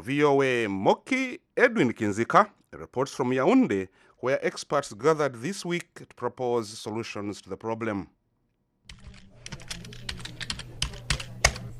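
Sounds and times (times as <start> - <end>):
speech: 0.0 - 8.2
rapid typing on a computer keyboard at a financial institution in Yaounde: 8.9 - 11.7.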